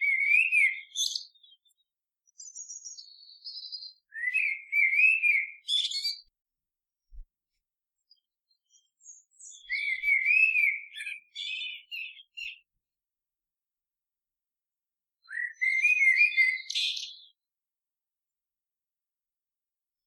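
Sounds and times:
bird song of clear whistled slurred notes and high chirps: 0.0s - 6.3s, 8.1s - 12.8s, 15.2s - 17.4s.

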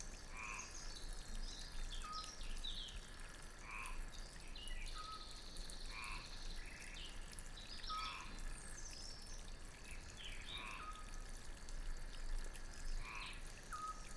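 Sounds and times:
rushing fountain water: 0.0s - 14.1s
frogs croaking: 0.3s - 0.8s, 5.9s - 6.4s, 7.9s - 8.4s, 10.4s - 11.2s, 13.0s - 14.1s.

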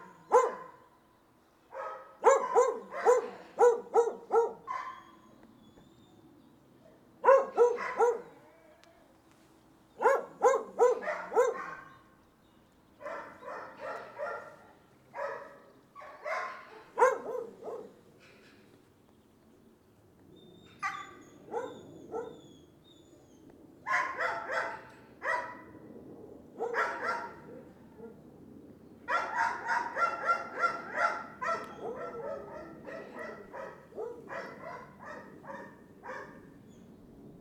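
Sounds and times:
dog barking: 0.1s - 0.8s, 1.7s - 5.2s, 7.2s - 8.4s, 10.0s - 12.0s, 13.0s - 18.0s, 20.8s - 22.4s, 23.9s - 25.7s, 26.6s - 27.6s, 29.1s - 36.5s.

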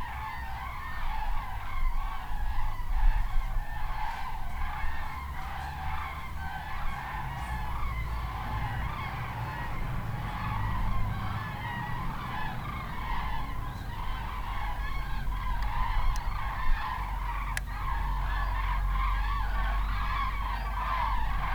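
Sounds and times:
geese honking: 0.0s - 21.5s.

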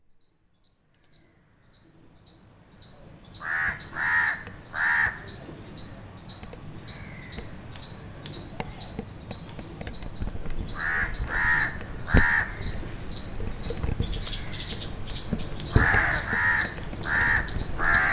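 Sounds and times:
bird calls, harsh grating caws: 3.3s - 5.4s, 6.8s - 8.5s, 10.6s - 13.3s, 14.1s - 18.1s.

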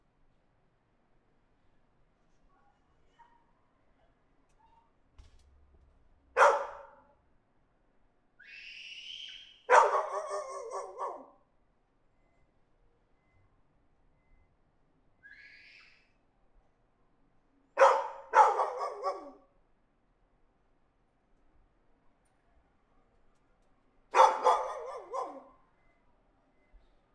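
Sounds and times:
dog barking in an alley: 6.4s - 7.0s, 9.7s - 11.4s, 17.8s - 19.4s, 24.1s - 25.6s.

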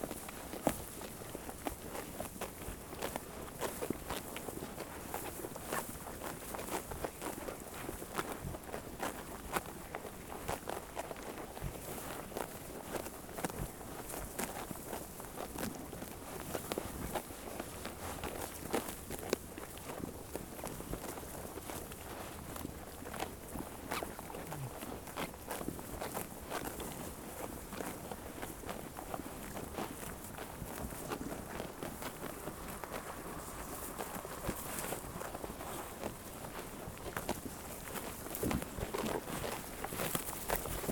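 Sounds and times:
sheep chewing grass: 0.0s - 40.8s.

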